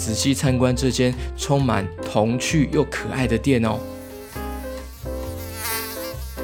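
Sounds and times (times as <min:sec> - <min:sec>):
speech: 0:00.0 - 0:04.0
housefly buzzing around: 0:03.6 - 0:06.4.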